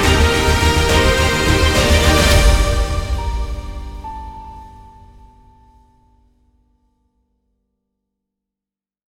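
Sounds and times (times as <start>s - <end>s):
victory jingle: 0.0s - 5.2s.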